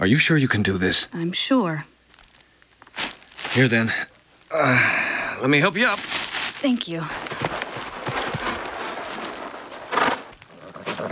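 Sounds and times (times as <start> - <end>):
speech: 0.0 - 1.9, 3.6 - 7.4
horse galloping: 6.3 - 11.0.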